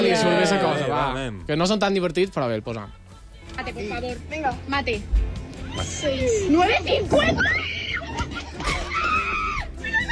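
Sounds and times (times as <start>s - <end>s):
speech: 0.2s - 7.8s
excited high-pitched screaming: 7.4s - 10.0s.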